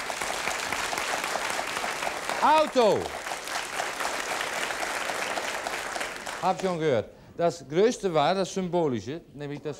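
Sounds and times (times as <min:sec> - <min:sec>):
audience applause: 0:00.0 - 0:06.7
speech: 0:02.4 - 0:03.2, 0:06.4 - 0:09.7.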